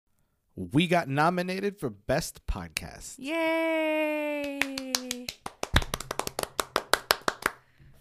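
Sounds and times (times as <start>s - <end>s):
speech: 0.6s - 5.1s
hands clapping: 4.4s - 7.6s.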